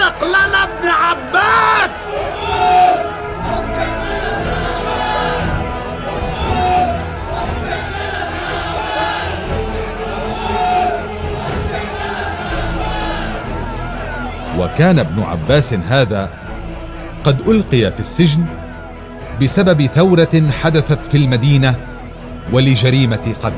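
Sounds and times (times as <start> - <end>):
crowd shouting together: 0.0 - 17.2
speech: 14.6 - 16.4, 17.2 - 18.6, 19.4 - 21.9, 22.5 - 23.5.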